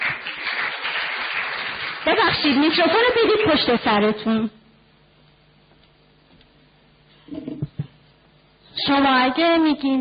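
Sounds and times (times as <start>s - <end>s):
audience applause: 0.0s - 2.2s
speech: 2.0s - 4.6s, 8.9s - 9.9s.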